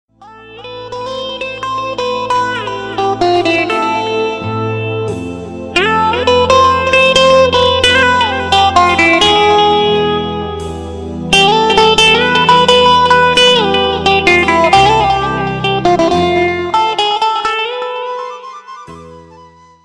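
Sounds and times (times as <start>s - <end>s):
guitar: 0.1s - 19.8s.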